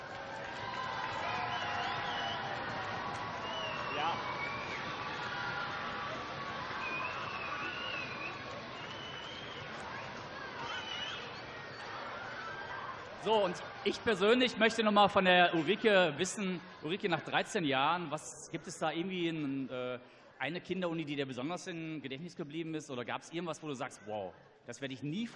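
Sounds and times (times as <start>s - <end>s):
audience applause: 0.0s - 14.9s
speech: 13.2s - 25.3s.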